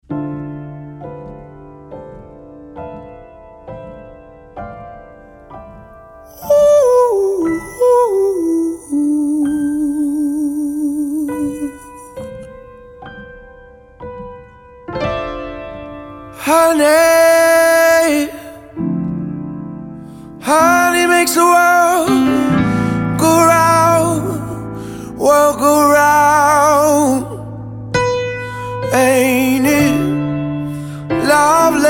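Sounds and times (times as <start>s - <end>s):
piano piece: 0.0s - 31.8s.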